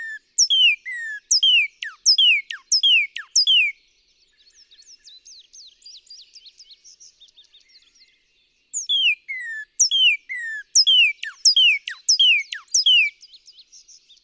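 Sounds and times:
Northern cardinal whistling song: 0.0s - 3.8s, 8.8s - 13.2s.

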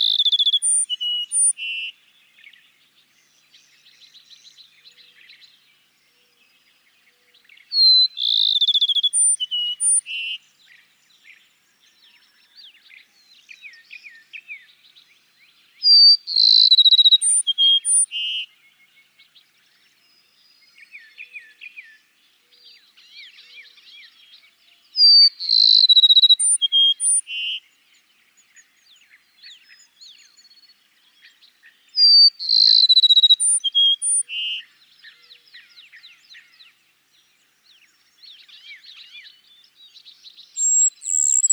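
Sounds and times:
birds twittering: 0.0s - 1.6s, 7.8s - 10.0s, 15.8s - 18.1s, 25.0s - 31.3s, 32.0s - 41.5s
Cassin's sparrow singing: 0.0s - 1.9s, 7.5s - 10.6s, 15.8s - 18.5s, 22.6s - 41.5s.

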